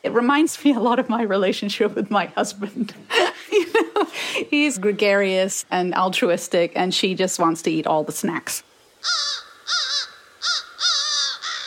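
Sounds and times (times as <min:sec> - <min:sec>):
speech: 0:00.0 - 0:03.6, 0:04.4 - 0:09.8
crow cawing: 0:09.0 - 0:11.6.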